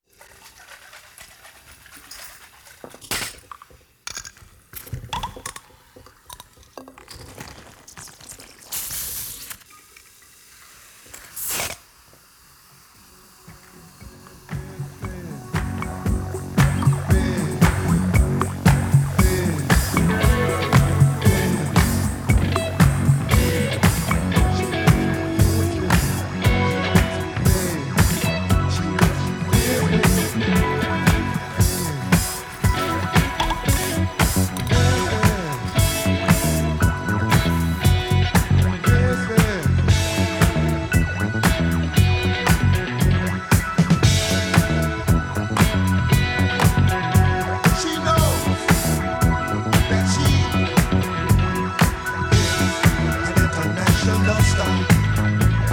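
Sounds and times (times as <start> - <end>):
disco music: 14.0 - 55.7.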